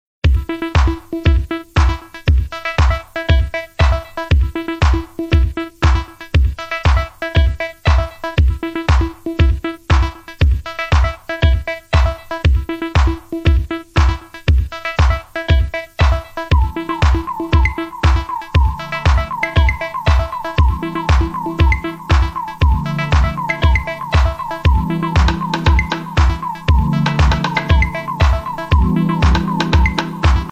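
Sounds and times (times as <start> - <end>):
background music ringtone: 0.3 - 30.5.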